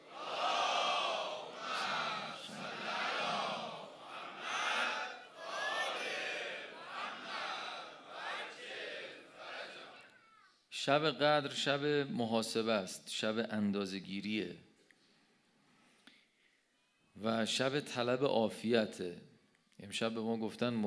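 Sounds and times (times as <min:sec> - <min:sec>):
audience loudly chanting salawat: 0:00.0 - 0:10.1
speech: 0:10.8 - 0:14.7, 0:17.3 - 0:20.8.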